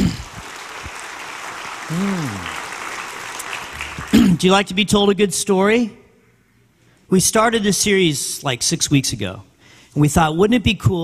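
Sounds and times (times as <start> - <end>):
audience applause: 0.0 - 4.5
speech: 1.9 - 2.6, 4.4 - 6.0, 7.1 - 11.0.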